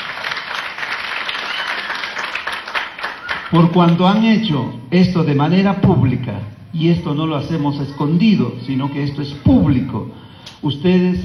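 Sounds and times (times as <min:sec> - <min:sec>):
audience applauding loudly: 0:00.0 - 0:04.3
speech: 0:03.5 - 0:11.2.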